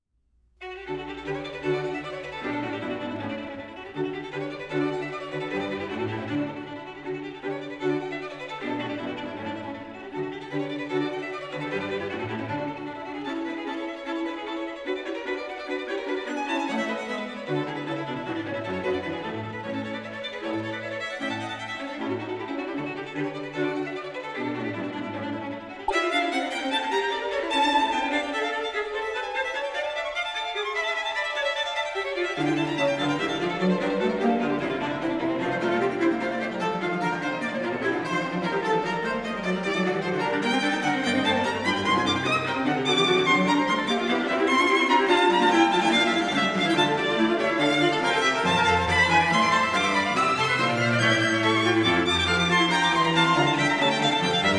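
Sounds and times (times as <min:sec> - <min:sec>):
string quartet playing a fast finale in D major: 0:00.6 - 0:54.5.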